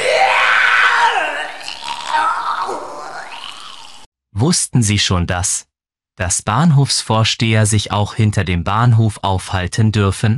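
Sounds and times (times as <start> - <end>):
person vomiting: 0.0 - 4.1
speech: 4.4 - 10.3.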